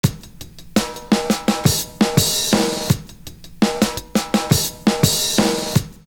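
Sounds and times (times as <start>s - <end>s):
drum fill loop: 0.0s - 6.1s.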